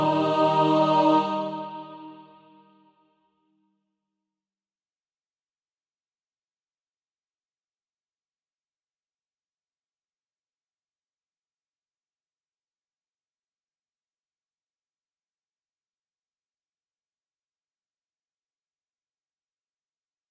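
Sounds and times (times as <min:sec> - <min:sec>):
mixed practice music: 0:00.0 - 0:02.9.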